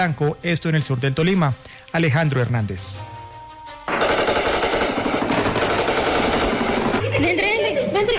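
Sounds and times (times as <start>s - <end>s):
speech: 0.0s - 3.2s
rapid automatic gunfire during armed combat: 3.9s - 7.5s.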